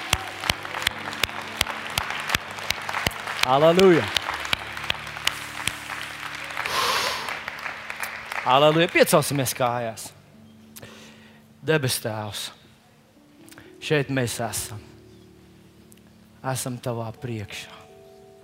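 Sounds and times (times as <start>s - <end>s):
audience clapping: 0.0s - 10.1s
crowd noise: 0.0s - 10.3s
speech: 3.4s - 4.2s, 8.5s - 10.1s, 11.6s - 12.6s, 13.8s - 14.9s, 16.4s - 17.8s.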